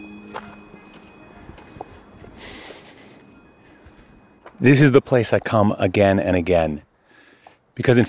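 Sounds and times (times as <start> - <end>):
footsteps on a path on Joppenburg Mountain: 0.2 - 5.7
speech: 4.6 - 6.9, 7.8 - 8.0.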